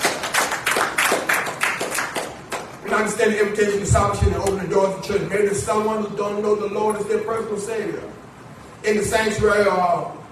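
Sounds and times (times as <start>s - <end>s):
crowd clapping in rhythm: 0.0s - 3.0s
speech: 2.9s - 8.2s, 8.8s - 10.2s.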